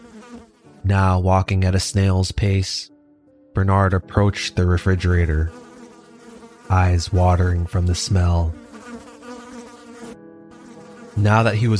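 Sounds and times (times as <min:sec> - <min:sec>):
swarm of flies buzzing: 0:00.0 - 0:00.8, 0:05.2 - 0:11.7
speech: 0:00.8 - 0:02.9, 0:03.6 - 0:05.6, 0:06.7 - 0:08.6, 0:11.2 - 0:11.7.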